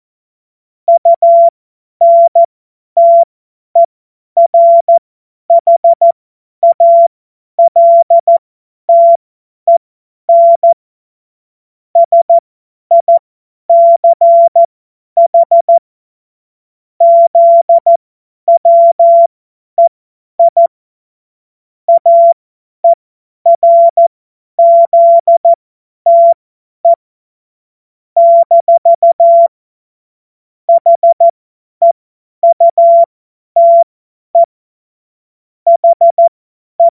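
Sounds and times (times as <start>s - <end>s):
CW Morse code beeps: 0.9s - 10.8s, 12.0s - 15.8s, 17.0s - 20.7s, 21.9s - 27.0s, 28.2s - 29.5s, 30.7s - 34.5s, 35.7s - 36.9s.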